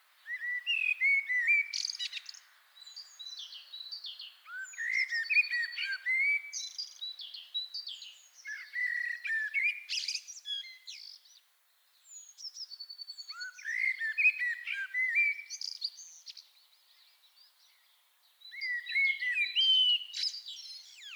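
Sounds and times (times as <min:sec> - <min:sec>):
common blackbird Turdus merula singing: 0:00.3 - 0:11.2, 0:13.2 - 0:16.4, 0:18.4 - 0:21.1.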